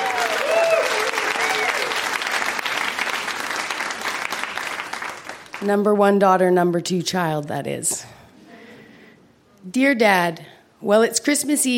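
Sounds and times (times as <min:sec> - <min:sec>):
audience applause welcoming a speaker to the stage: 0:00.0 - 0:05.6
speech: 0:05.6 - 0:08.2, 0:09.6 - 0:11.7.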